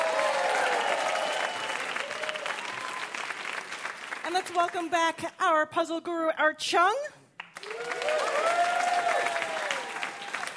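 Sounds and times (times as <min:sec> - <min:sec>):
studio audience applause at a quiz game show: 0:00.0 - 0:05.1, 0:07.4 - 0:10.5
speech: 0:04.3 - 0:07.2.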